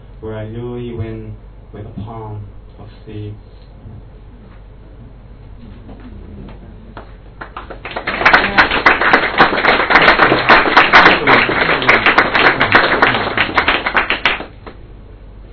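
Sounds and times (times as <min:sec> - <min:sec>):
speech: 0:00.2 - 0:04.1
audience clapping: 0:06.9 - 0:14.8.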